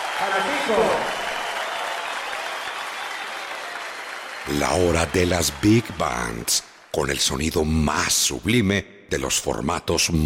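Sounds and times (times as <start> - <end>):
standing ovation applause: 0.0 - 7.6
speech: 0.2 - 1.2, 4.4 - 10.2.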